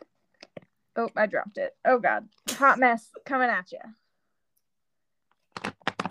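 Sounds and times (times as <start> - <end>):
speech: 1.0 - 4.0
shuffling a deck of cards: 5.5 - 6.0.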